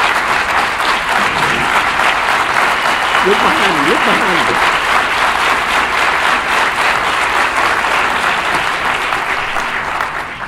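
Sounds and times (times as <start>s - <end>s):
audience applause in an auditorium: 0.0s - 10.4s
speech: 3.2s - 4.8s.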